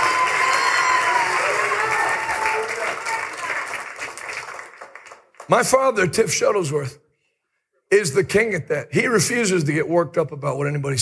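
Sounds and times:
scattered shouts and whoops: 0.0 - 3.7
crowd clapping: 0.0 - 6.0
speech: 5.5 - 7.0, 7.9 - 11.0.

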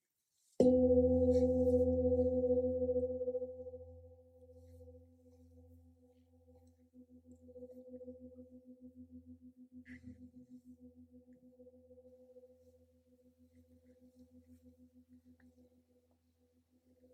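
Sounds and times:
gong strike ringing: 0.6 - 3.5.

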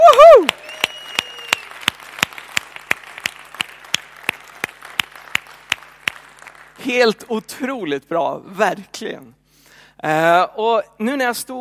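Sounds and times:
resounding audience applause: 0.0 - 6.8
speech: 6.8 - 9.4, 10.0 - 11.6.

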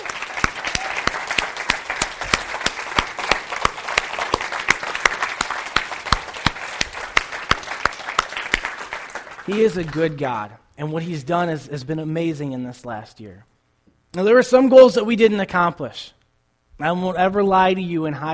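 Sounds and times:
audience round of applause: 0.0 - 10.4
speech: 9.5 - 13.5, 14.1 - 16.2, 16.8 - 18.3.

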